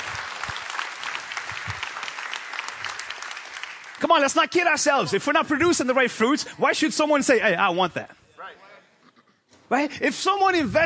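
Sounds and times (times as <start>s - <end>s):
audience clapping: 0.0s - 5.2s
speech: 4.0s - 8.6s, 9.7s - 10.8s.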